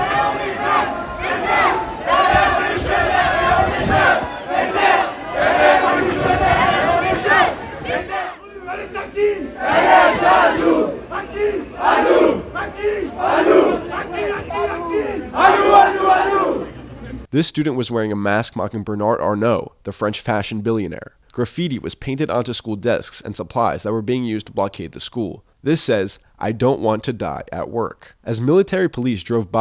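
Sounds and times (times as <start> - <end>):
students cheering and shouting in a Paris street protest: 0.0 - 16.8
speech: 17.4 - 29.5.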